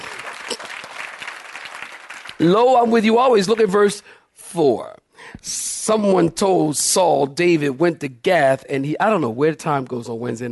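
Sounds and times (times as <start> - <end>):
audience clapping: 0.0 - 3.8
speech: 2.4 - 10.4.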